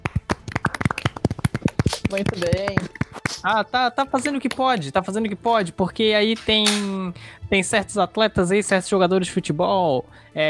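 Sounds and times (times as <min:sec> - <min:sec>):
people clapping: 0:00.0 - 0:04.9
speech: 0:02.1 - 0:10.4.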